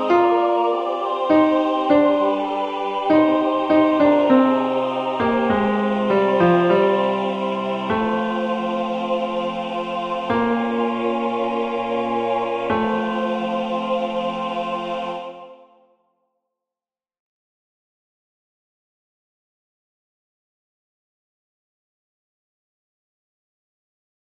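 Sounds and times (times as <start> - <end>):
tenor singing a sacred song: 0.0 - 15.6.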